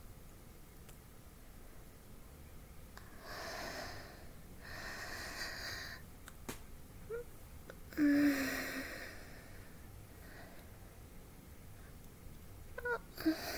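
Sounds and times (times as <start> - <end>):
heavy breathing: 3.0 - 6.0, 7.9 - 10.9, 12.8 - 13.5.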